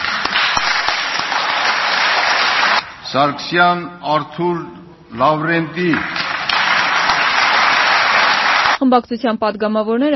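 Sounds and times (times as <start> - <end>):
applause from standing parliament deputies: 0.0 - 2.8, 5.8 - 8.8
speech: 3.1 - 6.2, 8.8 - 10.1.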